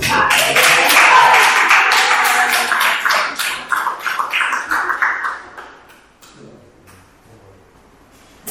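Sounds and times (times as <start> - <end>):
crowd applauding: 0.0 - 5.9.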